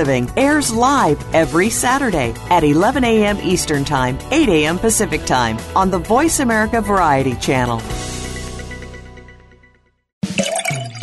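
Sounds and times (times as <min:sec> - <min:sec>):
speech: 0:00.0 - 0:08.1
wine being poured into a glass: 0:10.3 - 0:11.0.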